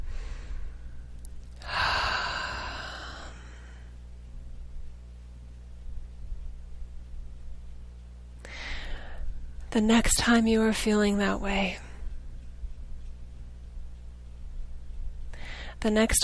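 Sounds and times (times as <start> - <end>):
person's deep breath during a guided relaxation exercise: 0.0 - 0.9, 1.6 - 4.0, 8.4 - 9.3, 15.3 - 15.8
faint steady hum: 0.0 - 16.2
speech: 9.7 - 11.8, 15.8 - 16.2.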